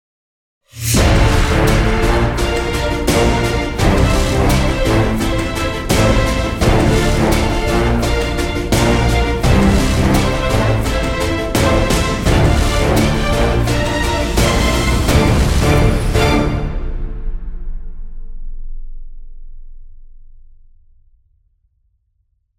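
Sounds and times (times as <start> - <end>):
exciting epic music sting: 0.8 - 18.3.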